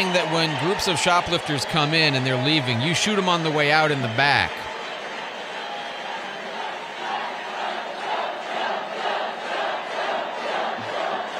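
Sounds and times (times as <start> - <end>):
speech: 0.0 - 4.7
crowd chanting: 4.7 - 11.3.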